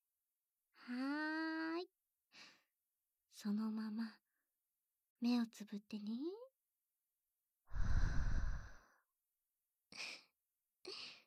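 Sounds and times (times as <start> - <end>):
speech: 0.8 - 1.3, 3.4 - 4.2, 5.2 - 6.4
deep breath let out through the mouth: 7.7 - 8.8.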